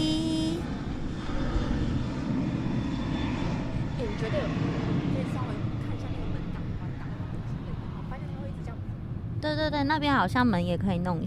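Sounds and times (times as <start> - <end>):
airplane flying overhead: 0.0 - 11.2
speech: 9.6 - 11.2.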